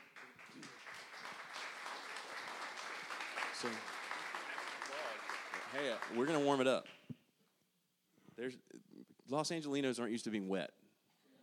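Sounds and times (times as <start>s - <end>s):
live audience in Los Angeles applauding guests: 0.0s - 7.1s
speech: 3.6s - 3.9s, 5.7s - 7.0s, 8.4s - 10.8s.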